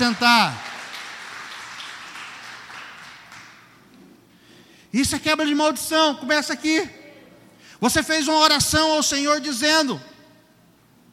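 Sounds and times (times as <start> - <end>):
speech: 0.0 - 0.7, 4.9 - 7.0, 7.8 - 10.1
audience applause: 0.0 - 3.8.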